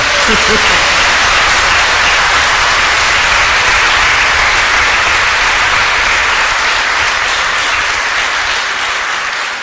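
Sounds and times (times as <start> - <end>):
laughter: 0.0 - 4.6
church congregation clapping for worshippers outside in the rain: 0.0 - 9.6.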